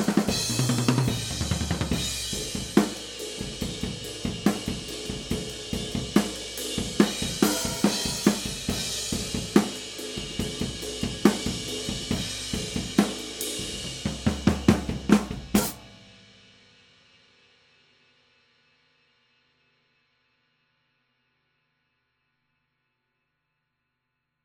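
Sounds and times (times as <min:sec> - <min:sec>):
overhead drum cymbals: 0:00.0 - 0:17.1.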